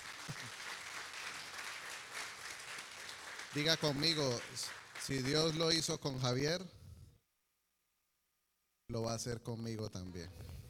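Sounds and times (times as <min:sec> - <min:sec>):
audience applause: 0:00.0 - 0:05.8
speech: 0:03.6 - 0:06.8, 0:08.9 - 0:10.6.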